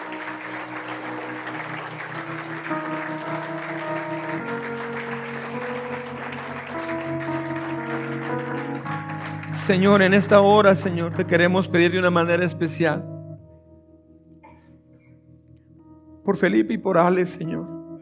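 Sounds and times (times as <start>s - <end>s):
audience applause: 0.0s - 11.1s
speech: 9.6s - 13.1s, 16.3s - 17.8s.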